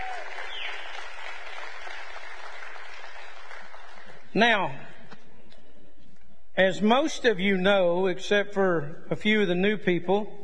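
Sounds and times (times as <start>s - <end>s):
audience clapping: 0.0s - 4.3s
speech: 4.4s - 4.9s, 6.6s - 10.4s.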